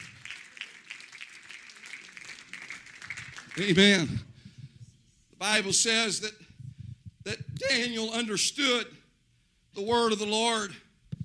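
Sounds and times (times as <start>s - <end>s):
audience clapping hands: 0.0s - 4.4s
speech: 3.6s - 4.3s, 5.4s - 6.4s, 7.3s - 9.0s, 9.8s - 10.8s.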